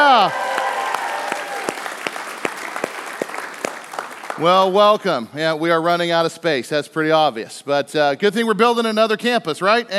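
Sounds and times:
faint cheering: 0:00.0 - 0:02.1
crowd clapping: 0:00.0 - 0:05.1
speech: 0:00.2 - 0:00.5, 0:04.4 - 0:09.9.

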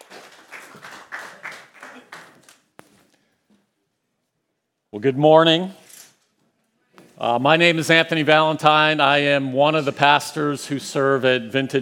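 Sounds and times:
church congregation applause welcoming a guest preacher: 0:00.0 - 0:02.7
speech: 0:04.9 - 0:05.8, 0:07.2 - 0:11.8.

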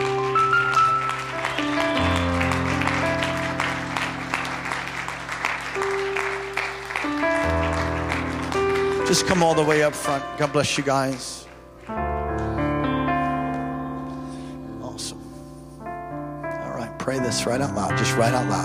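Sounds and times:
audience applauding: 0:00.0 - 0:11.9
sustained keyboard or organ chords: 0:00.0 - 0:18.6
speech: 0:09.1 - 0:12.0, 0:17.1 - 0:18.6.

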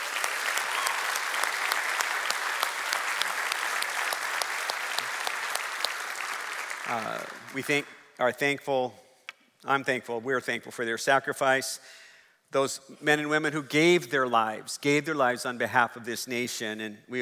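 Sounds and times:
crowd applause: 0:00.0 - 0:07.8
speech: 0:06.9 - 0:09.0, 0:09.6 - 0:17.2.

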